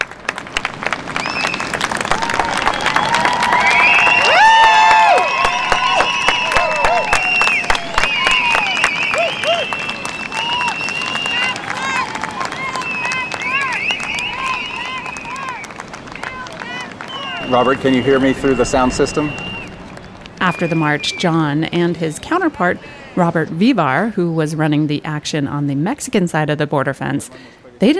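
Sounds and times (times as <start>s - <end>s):
protesters cheering loudly: 0.6s - 21.4s
speech: 17.6s - 19.5s, 20.5s - 27.9s.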